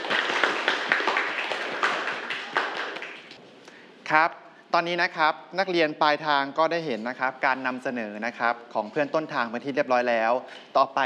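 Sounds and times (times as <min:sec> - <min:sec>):
students applauding: 0:00.0 - 0:03.4
speech: 0:04.1 - 0:11.0.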